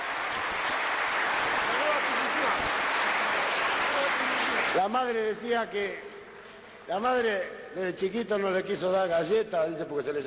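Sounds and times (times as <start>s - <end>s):
applause: 0.0s - 6.1s
speech: 4.8s - 6.1s, 6.9s - 10.2s.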